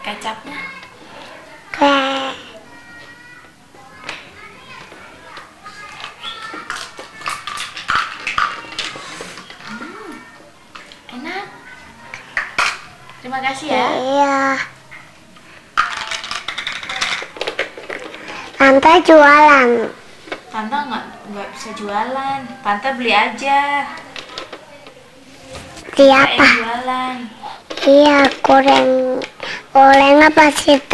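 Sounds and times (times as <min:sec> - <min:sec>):
speech: 0:00.0 - 0:00.8, 0:13.4 - 0:14.7, 0:19.0 - 0:20.0, 0:20.6 - 0:24.0, 0:26.0 - 0:30.9
children chattering: 0:00.0 - 0:30.9
spoons and dishes clattering: 0:05.9 - 0:09.7, 0:15.8 - 0:18.4.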